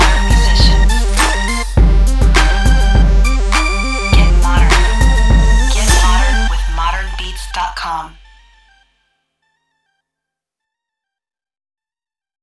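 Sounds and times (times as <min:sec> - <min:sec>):
synth loops: 0:00.0 - 0:08.8.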